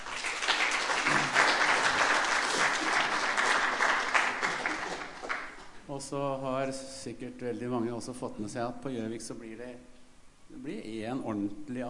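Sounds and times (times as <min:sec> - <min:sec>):
audience applause: 0:00.0 - 0:05.8
speech: 0:06.1 - 0:09.9, 0:10.5 - 0:11.8.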